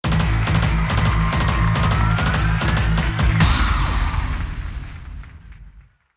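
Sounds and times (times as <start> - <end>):
rock music: 0.0 - 4.9.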